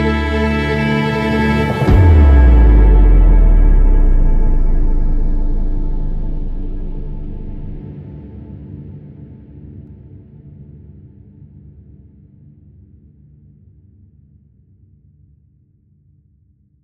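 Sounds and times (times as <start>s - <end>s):
hectic epic adventure orchestral music: 0.0s - 7.8s.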